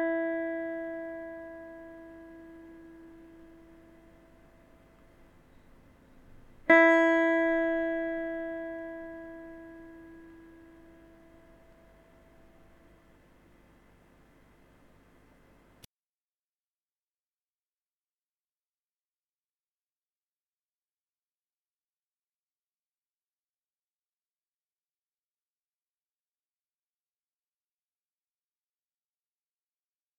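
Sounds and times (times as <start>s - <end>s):
electric guitar first string E: 0.0s - 13.2s.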